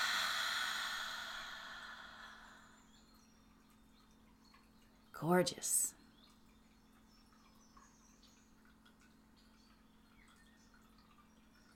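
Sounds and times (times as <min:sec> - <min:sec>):
slow deep exhale during a guided breathing exercise: 0:00.0 - 0:03.0
speech: 0:05.2 - 0:06.0.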